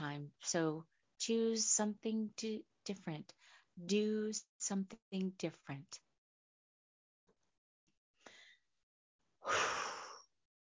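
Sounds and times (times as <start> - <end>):
speech: 0.2 - 6.0
person breathing: 3.4 - 3.8, 8.2 - 8.7, 9.4 - 10.2.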